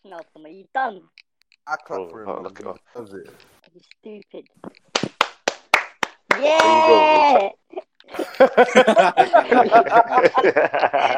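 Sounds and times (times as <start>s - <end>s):
speech: 0.1s - 4.9s, 6.4s - 11.1s
people clapping for a guest: 4.8s - 7.6s
laughter: 6.4s - 11.1s.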